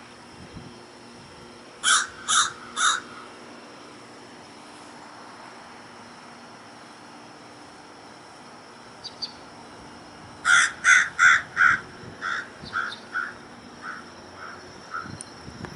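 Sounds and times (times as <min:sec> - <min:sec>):
Louisiana waterthrush Parkesia motacilla singing: 0:09.0 - 0:09.5, 0:10.5 - 0:15.5.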